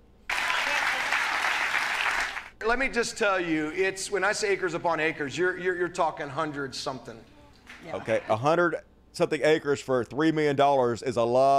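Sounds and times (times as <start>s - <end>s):
crowd clapping: 0.3s - 2.6s
speech: 2.6s - 11.5s.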